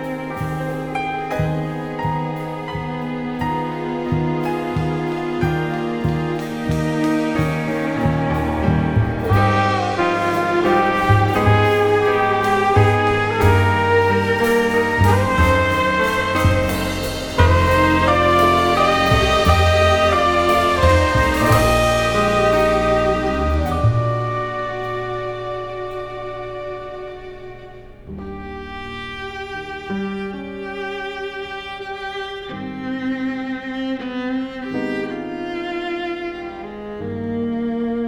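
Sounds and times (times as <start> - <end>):
big band jazz ballad: 0.0 - 37.6.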